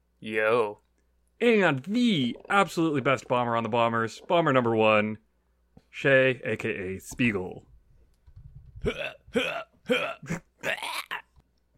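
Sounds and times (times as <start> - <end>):
speech: 0.2 - 0.8, 1.4 - 5.2, 5.9 - 7.7, 8.8 - 11.1
person imitating a cat vomiting: 8.8 - 11.4.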